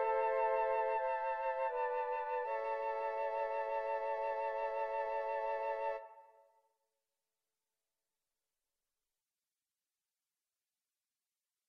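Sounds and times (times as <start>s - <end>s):
flute quartet playing: 0.0s - 6.1s.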